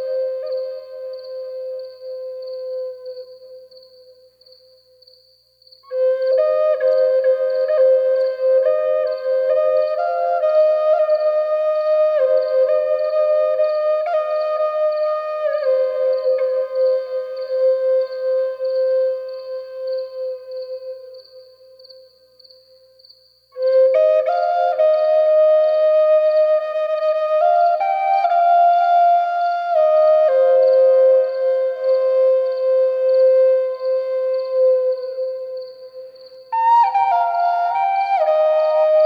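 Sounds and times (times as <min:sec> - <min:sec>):
Native American flute lullaby: 0:00.0 - 0:04.1, 0:05.8 - 0:22.1, 0:23.5 - 0:39.0
crickets chirping at nightfall: 0:00.0 - 0:39.0.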